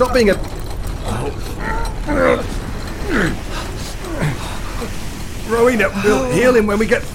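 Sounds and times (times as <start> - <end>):
speech: 0.0 - 0.6, 1.2 - 3.7, 5.5 - 7.1
heavy gate grinding shut: 0.0 - 5.4
metallic creaks and groans: 0.0 - 7.1.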